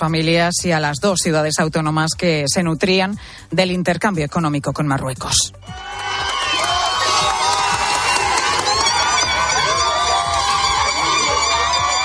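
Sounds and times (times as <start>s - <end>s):
speech: 0.0s - 6.0s
hundreds of people applauding at border crossing: 5.7s - 12.0s.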